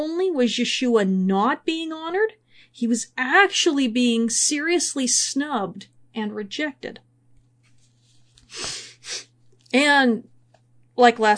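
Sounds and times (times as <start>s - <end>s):
speech: 0.0s - 7.1s, 8.5s - 10.3s, 11.0s - 11.3s
person sniffling from allergies: 8.4s - 9.3s.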